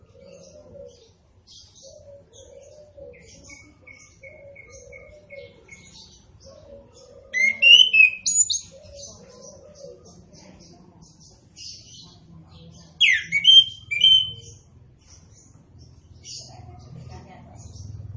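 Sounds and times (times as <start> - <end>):
orange-headed thrush singing warbled whistles: 13.0 - 14.4.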